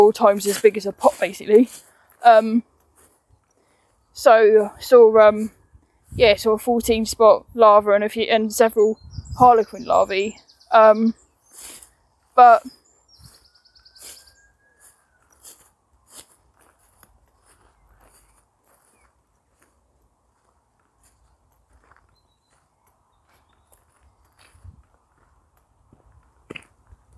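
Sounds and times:
speech: 0.0 - 2.7, 4.2 - 11.2, 12.4 - 12.8
birds chirping: 0.0 - 15.6, 17.3 - 25.6
footsteps of someone walking outdoors searching for ladybirds: 0.0 - 27.1
rising whistled bird call: 12.7 - 15.2.

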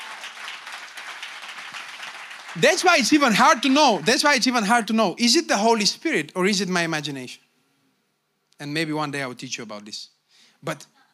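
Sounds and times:
audience clapping: 0.0 - 4.9
speech: 2.6 - 7.4, 8.6 - 11.0.

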